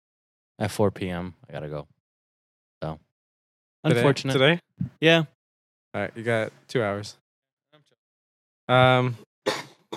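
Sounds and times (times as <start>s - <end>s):
speech: 0.6s - 2.0s, 2.8s - 3.0s, 3.8s - 5.4s, 6.0s - 7.2s, 8.7s - 9.9s
man coughing: 9.5s - 9.9s.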